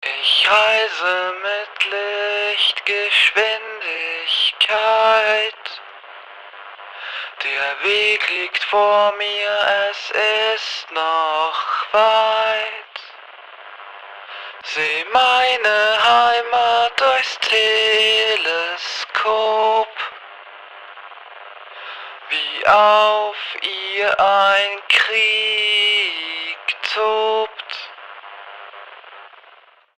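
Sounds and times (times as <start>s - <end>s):
main vocal line at 130 bpm: 0.0s - 5.8s, 7.3s - 13.1s, 14.5s - 20.2s, 22.2s - 27.9s.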